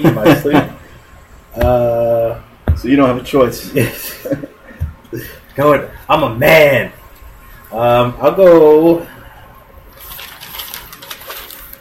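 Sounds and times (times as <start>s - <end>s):
speech: 0.0s - 0.7s, 1.6s - 2.1s, 2.8s - 4.5s, 5.1s - 7.0s, 7.7s - 9.1s
papers rustling: 9.9s - 11.7s.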